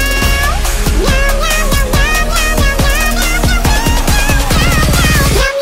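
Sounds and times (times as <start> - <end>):
bongo drums: 0.2 - 5.5.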